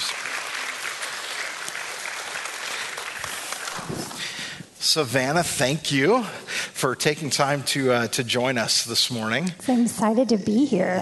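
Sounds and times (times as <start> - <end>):
audience applause welcoming a guest speaker at a Sunday morning church service: 0.0 - 4.4
speech: 4.8 - 11.0.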